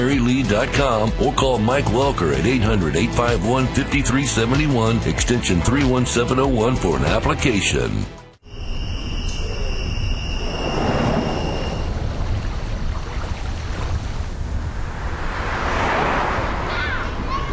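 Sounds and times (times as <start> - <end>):
speech: 0.0 - 8.2
thin high whine: 8.4 - 12.5
constant low rumble: 9.6 - 17.5
motorcycles riding past: 14.2 - 17.5.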